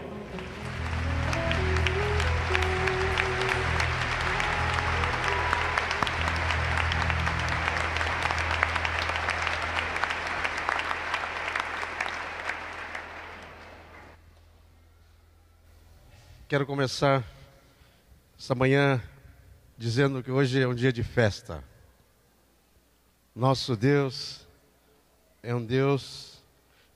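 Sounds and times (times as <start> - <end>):
audience applauding: 0.0 - 14.2
speech: 16.5 - 17.4, 18.4 - 19.1, 19.8 - 21.7, 23.4 - 24.4, 25.4 - 26.3.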